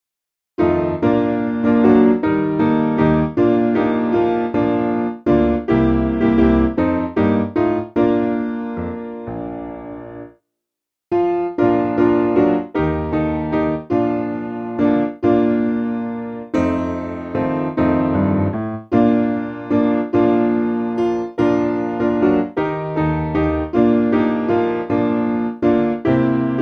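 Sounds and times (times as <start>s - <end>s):
piano: 0.6s - 10.5s, 11.1s - 26.6s.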